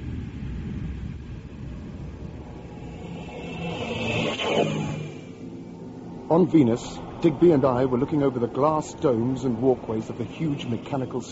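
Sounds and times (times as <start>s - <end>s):
spaceship reactor jets starting up: 2.1s - 7.1s
speech: 6.3s - 11.3s.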